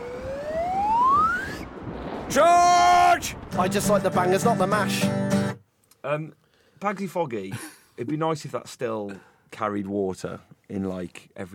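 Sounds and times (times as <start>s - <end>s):
whistle blown as a signal: 0.0s - 1.7s
speech: 2.3s - 5.3s, 6.0s - 11.5s.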